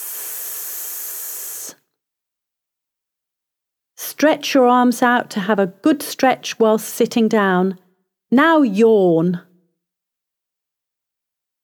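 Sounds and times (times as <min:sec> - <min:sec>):
breathing out with a shh: 0:00.0 - 0:01.9
speech: 0:04.2 - 0:09.5.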